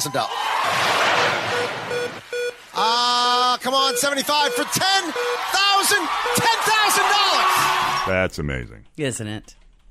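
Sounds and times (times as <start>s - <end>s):
speech: 0.0s - 9.6s
short high electronic beeps: 1.5s - 2.5s, 3.8s - 6.6s.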